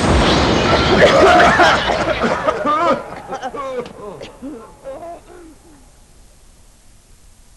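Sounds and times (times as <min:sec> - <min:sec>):
skyrocket firework whooshing and exploding: 0:00.0 - 0:03.4
laughter: 0:00.8 - 0:05.8.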